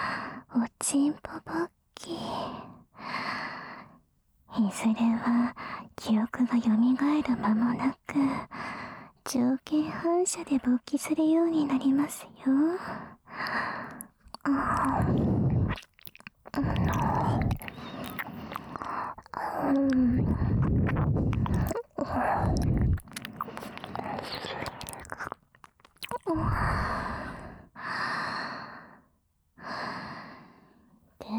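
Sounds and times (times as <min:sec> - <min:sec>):
speech: 0:00.8 - 0:02.7, 0:04.6 - 0:08.6, 0:09.3 - 0:15.9, 0:19.5 - 0:21.2
breathy sighs: 0:12.8 - 0:15.8, 0:16.6 - 0:25.2, 0:26.2 - 0:29.0
ASMR ear licking wet smacking mouth sounds: 0:13.4 - 0:27.0.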